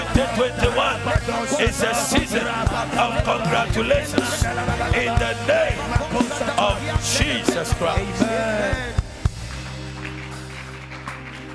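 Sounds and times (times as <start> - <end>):
speech: 0.4 - 9.0
audience clapping hesitantly: 6.9 - 11.5.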